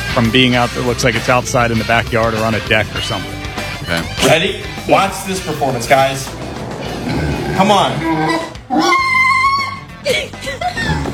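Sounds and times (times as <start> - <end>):
speech: 0.2 - 6.4, 7.0 - 9.0
pet pig squealing: 6.4 - 10.0.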